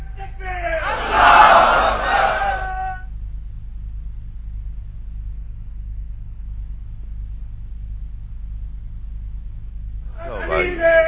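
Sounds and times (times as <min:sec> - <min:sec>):
crowd at a religious gathering shouting a slogan in unison: 0:00.8 - 0:03.0, 0:10.2 - 0:11.0.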